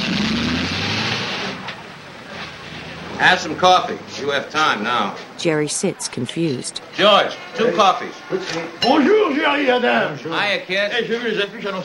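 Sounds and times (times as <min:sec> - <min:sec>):
taxi cab engine driving away: 0:00.0 - 0:05.2
speech: 0:03.2 - 0:11.8.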